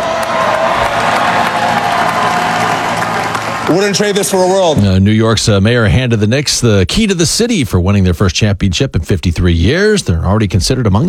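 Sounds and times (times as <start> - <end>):
clapping: 0.0 - 4.4
packed parade crowd cheering: 0.0 - 5.0
speech: 3.7 - 11.0.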